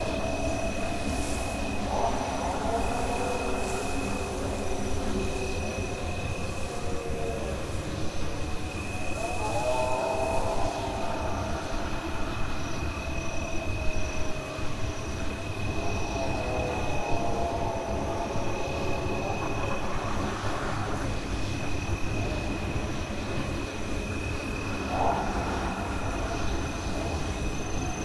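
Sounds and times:
forest ambience: 0:00.0 - 0:28.0.

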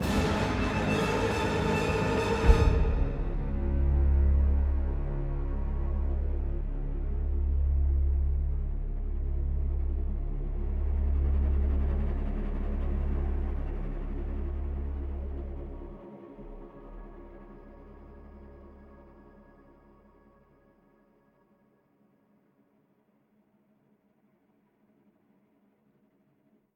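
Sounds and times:
intense game soundtrack: 0:00.0 - 0:16.4.

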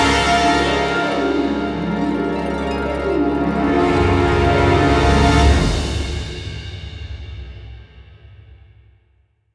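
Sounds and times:
music sting: 0:00.2 - 0:06.5.

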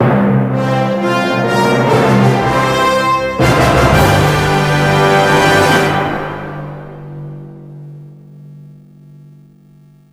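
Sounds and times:
stage beginning fanfare: 0:00.5 - 0:07.1.

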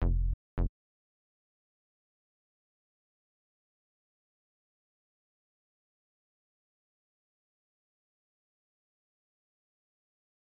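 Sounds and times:
bass: 0:00.0 - 0:00.7.

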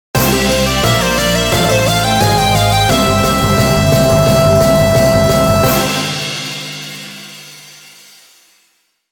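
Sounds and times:
victory fanfare: 0:00.2 - 0:07.0.

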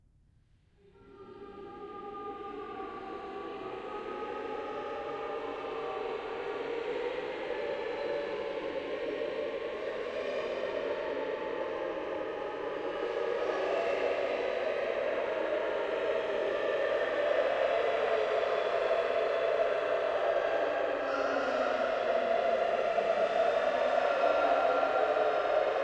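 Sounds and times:
choir singing: 0:00.9 - 0:25.8.

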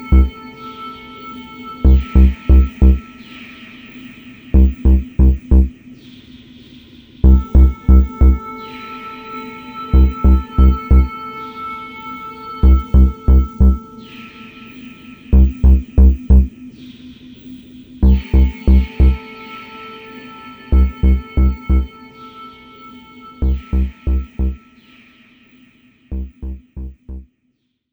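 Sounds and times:
ambient music: 0:00.0 - 0:03.4, 0:04.6 - 0:05.7, 0:07.2 - 0:14.4, 0:15.4 - 0:16.6, 0:18.0 - 0:24.7, 0:26.1 - 0:27.2.

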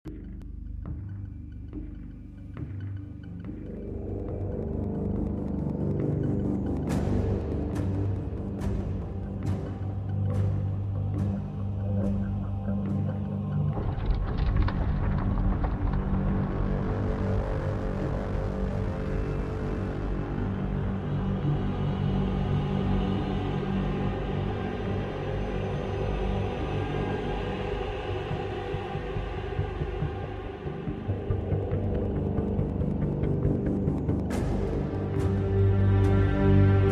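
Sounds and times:
ambient music: 0:00.0 - 0:36.8.

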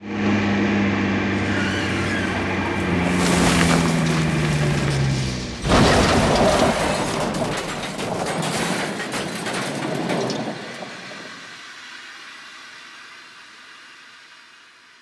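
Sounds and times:
car crash: 0:01.2 - 0:11.8.

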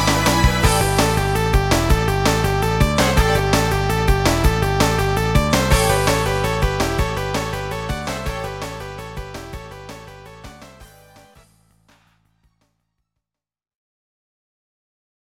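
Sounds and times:
battle music: 0:00.0 - 0:12.2.

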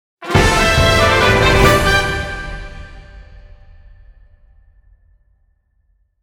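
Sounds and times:
level up fanfare: 0:00.2 - 0:03.3.

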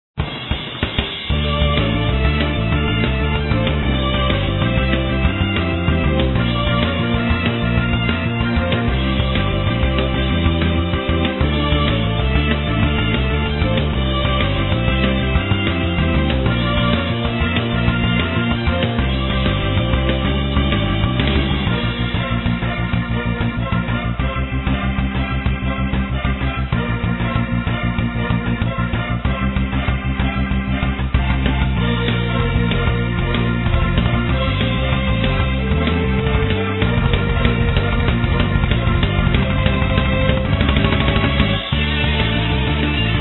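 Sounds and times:
battle sounds: 0:00.2 - 0:43.1.

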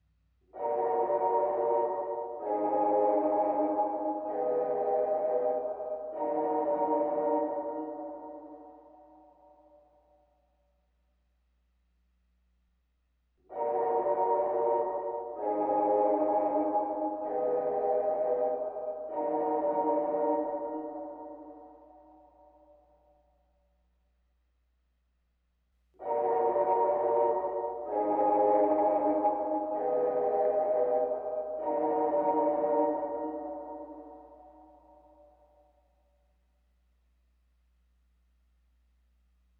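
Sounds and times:
organ: 0:00.5 - 0:09.1, 0:13.4 - 0:22.2, 0:26.0 - 0:35.2.

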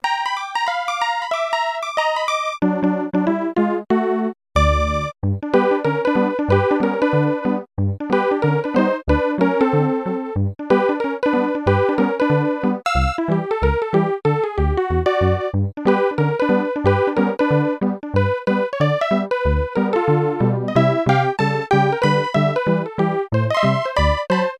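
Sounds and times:
ragtime music radio aircheck: 0:00.0 - 0:24.5.

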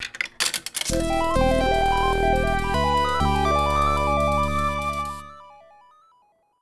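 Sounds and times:
arcade game start sound: 0:00.9 - 0:05.9.

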